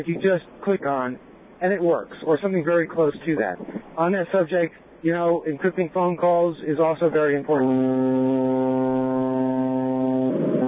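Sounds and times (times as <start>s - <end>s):
speech: 0.0s - 8.6s
deep loud ship's horn: 7.5s - 10.6s.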